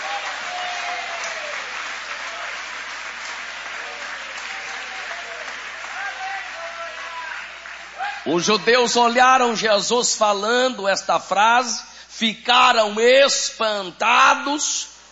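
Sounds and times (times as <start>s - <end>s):
audience applauding: 0.0s - 9.2s
speech: 8.3s - 14.9s.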